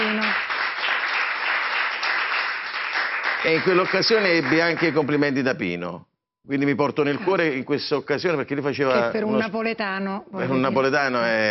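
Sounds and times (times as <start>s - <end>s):
audience clapping in tribute: 0.0s - 5.5s
speech: 3.4s - 11.4s.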